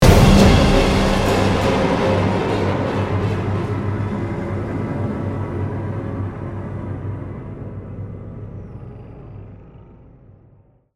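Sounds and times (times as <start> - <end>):
combat music outro: 0.0 - 5.2.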